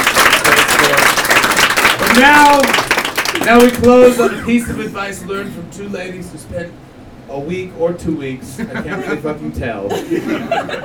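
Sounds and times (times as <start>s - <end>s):
audience applause: 0.0s - 4.1s
speech: 2.2s - 2.8s, 3.4s - 10.8s
laughter: 8.6s - 10.8s.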